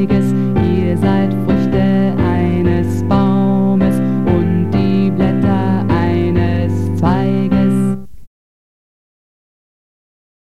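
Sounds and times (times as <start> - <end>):
choral music: 0.0 - 8.0
tenor singing: 0.0 - 8.1.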